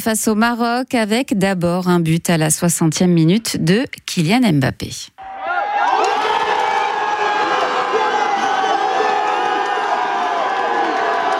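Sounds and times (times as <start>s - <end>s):
speech: 0.0s - 5.3s
football fan zone crowd cheering: 5.2s - 11.3s.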